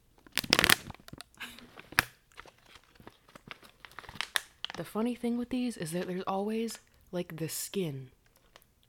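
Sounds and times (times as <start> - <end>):
snack bag being opened: 0.2 - 4.9
speech: 4.8 - 8.2.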